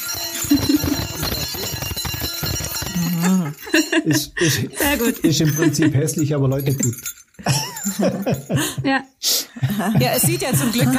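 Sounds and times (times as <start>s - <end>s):
hand bell being rung: 0.0s - 8.7s, 10.0s - 10.9s
laughter: 3.6s - 6.1s, 7.4s - 8.9s, 9.6s - 10.9s
speech: 4.0s - 10.9s.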